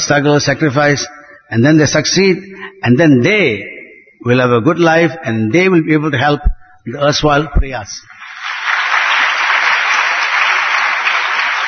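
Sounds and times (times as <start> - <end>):
speech: 0.1 - 8.1
audience clapping: 8.1 - 11.6.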